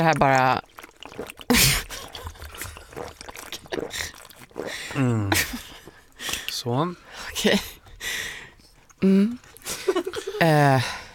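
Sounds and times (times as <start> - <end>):
speech: 0.0 - 1.7, 3.9 - 5.7, 6.6 - 7.8, 9.0 - 11.0
orange juice pouring into a glass: 0.0 - 6.2
person humming and murmuring: 9.0 - 9.4.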